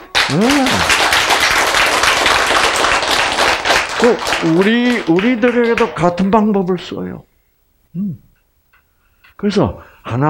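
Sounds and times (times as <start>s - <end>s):
audience clapping during a religious talk: 0.0s - 6.6s
speech: 0.3s - 1.0s, 4.0s - 7.3s, 7.9s - 8.2s, 9.4s - 10.2s.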